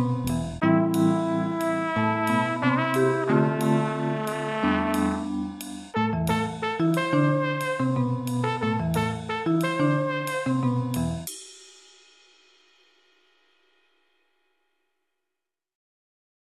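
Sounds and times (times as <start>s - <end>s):
jazzy trumpet: 0.0s - 11.3s.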